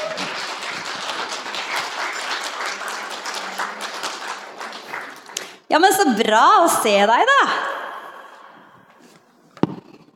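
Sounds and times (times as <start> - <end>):
audience applause: 0.0 - 5.7
speech: 5.7 - 7.8.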